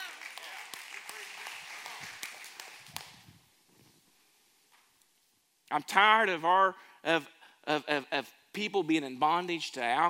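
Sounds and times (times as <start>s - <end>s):
audience hand claps: 0.0s - 3.4s
speech: 5.7s - 10.0s.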